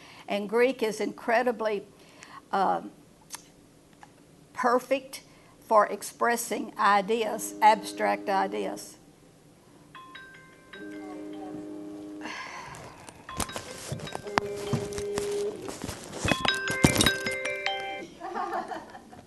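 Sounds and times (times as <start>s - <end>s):
speech: 0.3s - 3.0s, 4.6s - 9.0s
phone ringing with a robocall: 7.2s - 8.8s, 10.0s - 12.3s, 13.2s - 18.1s.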